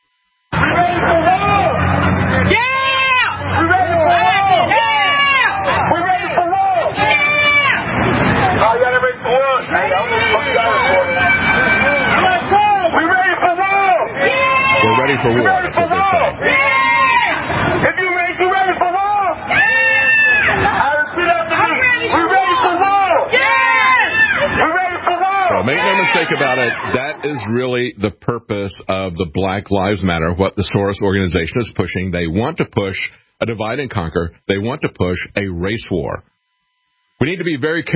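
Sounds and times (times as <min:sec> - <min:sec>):
rioting street mob shouting: 0:00.5 - 0:27.6
speech: 0:15.2 - 0:16.6, 0:25.7 - 0:36.3, 0:37.2 - 0:37.9.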